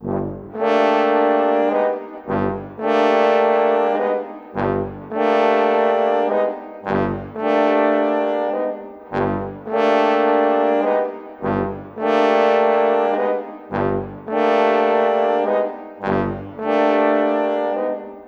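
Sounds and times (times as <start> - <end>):
cinematic brass: 0.0 - 18.2.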